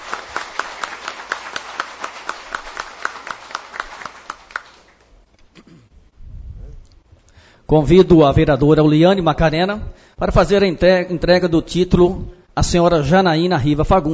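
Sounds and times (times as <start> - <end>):
audience applause: 0.0 - 5.1
speech: 7.7 - 14.1.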